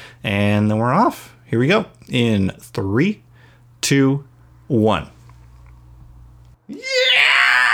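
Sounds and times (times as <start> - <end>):
speech: 0.2 - 3.2, 3.8 - 5.2
cathartic scream: 6.7 - 7.7.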